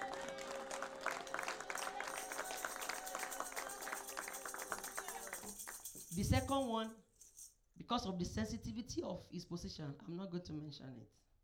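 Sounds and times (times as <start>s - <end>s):
church congregation clapping: 0.0s - 6.5s
speech: 6.1s - 7.0s, 7.9s - 11.2s.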